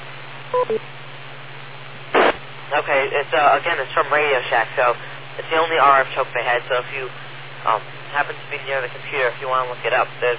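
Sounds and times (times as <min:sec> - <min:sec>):
beep tone: 0:00.6 - 0:00.8
speech: 0:00.6 - 0:01.0, 0:02.7 - 0:10.3.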